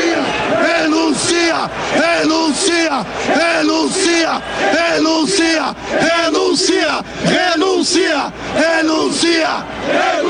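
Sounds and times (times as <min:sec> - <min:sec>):
crowd of football fans shouting and chanting in protest: 0:00.0 - 0:10.2.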